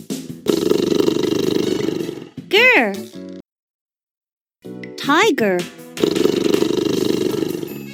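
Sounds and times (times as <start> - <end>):
tiger roar with raspy pulsing rumble: 0.5 - 2.4, 6.0 - 7.8.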